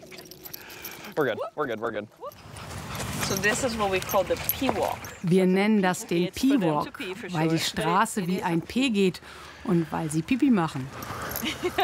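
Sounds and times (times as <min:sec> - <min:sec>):
excited dogs yelping and whimpering: 0:00.0 - 0:01.6, 0:02.2 - 0:07.7
speech: 0:01.2 - 0:02.5, 0:03.3 - 0:11.8
shuffling: 0:02.4 - 0:11.8.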